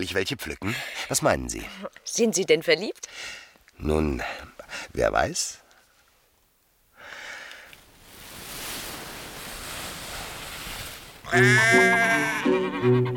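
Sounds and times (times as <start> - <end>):
speech: 0.0 - 5.6, 11.3 - 13.1
steady rushing noise: 7.7 - 11.5
sheep bleating at a livestock show: 11.2 - 12.8.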